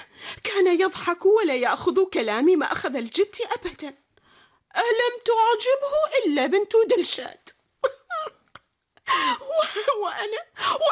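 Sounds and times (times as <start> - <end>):
speech: 0.6 - 4.0, 4.7 - 8.0, 9.2 - 10.9
woman crying: 7.8 - 10.9.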